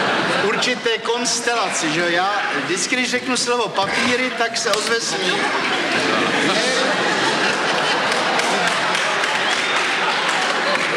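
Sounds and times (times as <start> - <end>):
laughter: 0.0 - 2.2, 3.8 - 10.9
speech: 0.6 - 8.8
audience applause: 5.6 - 10.9.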